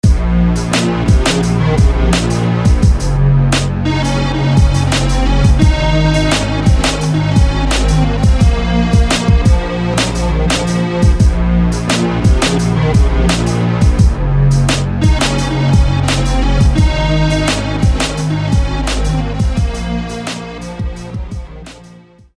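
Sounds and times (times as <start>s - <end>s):
synth: 0.0s - 22.0s.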